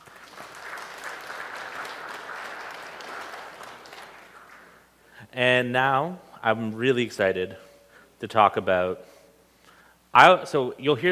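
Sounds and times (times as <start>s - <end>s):
church congregation applauding after a service: 0.0s - 4.9s
speech: 5.3s - 9.1s, 10.1s - 11.1s.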